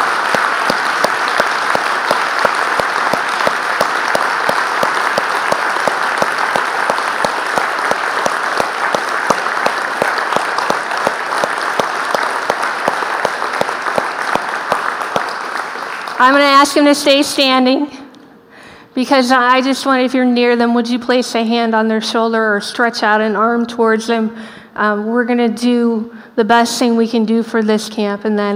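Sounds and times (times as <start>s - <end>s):
audience clapping: 0.0s - 16.9s
speech: 16.2s - 18.0s, 19.0s - 28.5s.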